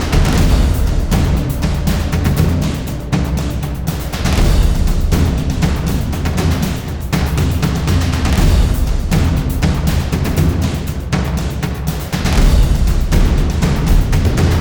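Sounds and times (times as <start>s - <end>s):
epic percussion-only music at 120 BPM: 0.0s - 14.5s.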